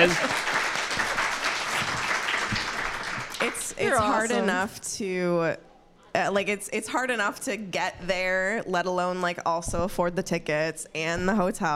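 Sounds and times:
speech: 0.0 - 0.3, 3.8 - 11.7
crowd applause: 0.0 - 4.4.

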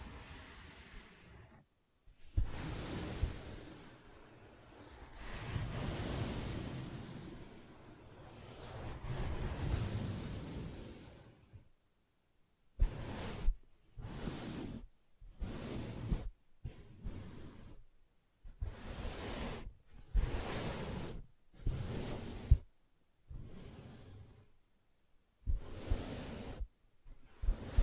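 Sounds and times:
soft fabric scratched and rubbed: 2.1 - 10.3, 12.8 - 17.9, 18.4 - 24.6, 25.5 - 27.8.

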